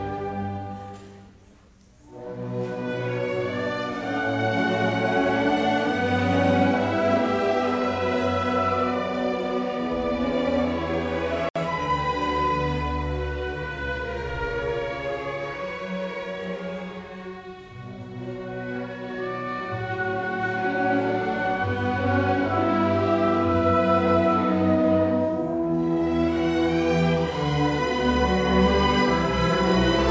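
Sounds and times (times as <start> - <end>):
school massed orchestra playing: 0.0 - 30.0.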